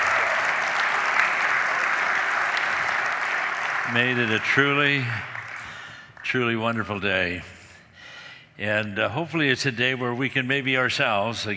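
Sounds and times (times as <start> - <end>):
crowd of volunteers and attendees applauding at a daytime men's gathering: 0.0 - 6.8
speech: 3.9 - 5.3, 6.3 - 7.6, 8.6 - 11.5.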